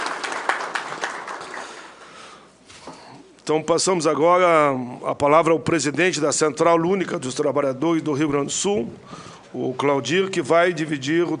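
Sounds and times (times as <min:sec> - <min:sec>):
crowd applause: 0:00.0 - 0:02.2
speech: 0:03.5 - 0:11.3.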